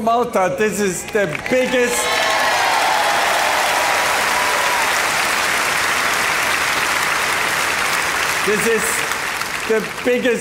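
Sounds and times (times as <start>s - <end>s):
speech: 0.0s - 2.3s, 8.5s - 9.0s, 9.7s - 10.4s
audience applause: 1.2s - 10.4s.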